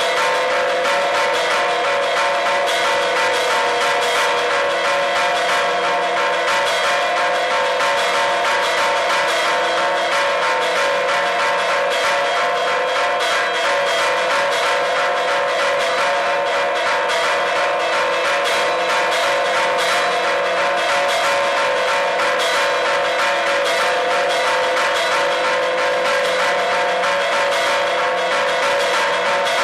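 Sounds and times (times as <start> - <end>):
celebration bells ringing: 0.0 - 29.6.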